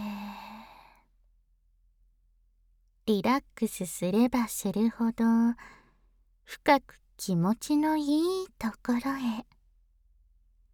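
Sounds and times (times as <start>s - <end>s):
slow exhale during a relaxation breathing exercise: 0.0s - 1.0s
speech: 3.1s - 5.8s, 6.5s - 9.5s.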